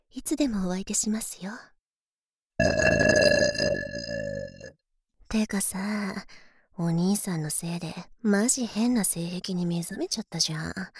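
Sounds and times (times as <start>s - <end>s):
speech: 0.2s - 1.7s, 5.3s - 10.9s
woman's long voiced burp: 2.6s - 4.7s.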